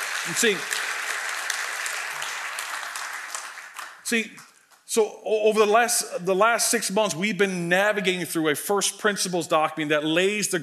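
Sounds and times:
audience clapping in a church: 0.0s - 4.9s
speech: 0.2s - 0.9s, 4.1s - 10.6s.

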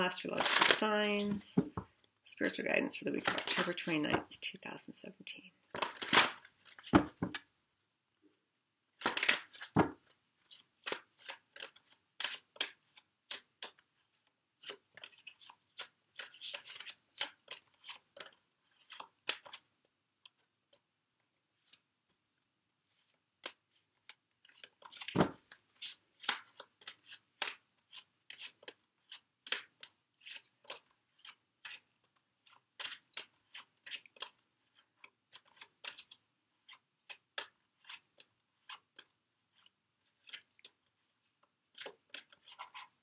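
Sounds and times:
speech: 0.0s - 5.5s
tarot cards shuffled and drawn: 0.3s - 1.8s, 3.1s - 4.4s, 5.7s - 7.4s, 9.0s - 19.7s, 22.9s - 40.8s, 41.8s - 43.0s.

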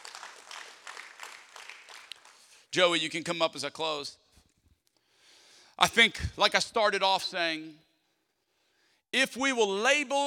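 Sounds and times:
audience clapping: 0.0s - 2.7s
speech: 2.8s - 4.2s, 5.8s - 7.9s, 9.1s - 10.2s.

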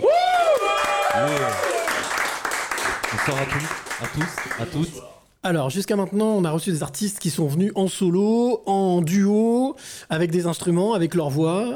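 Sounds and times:
whoops and cheering: 0.0s - 2.0s
audience clapping: 0.0s - 5.0s
speech: 3.2s - 11.7s.

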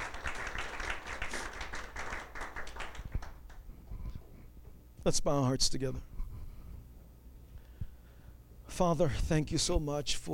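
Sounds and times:
round of applause: 0.0s - 3.7s
speech: 5.0s - 6.1s, 8.8s - 10.3s.

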